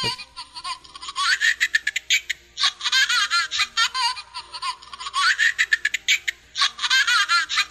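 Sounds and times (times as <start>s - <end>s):
creepy baby laughter from a voicemail: 0.0s - 7.7s.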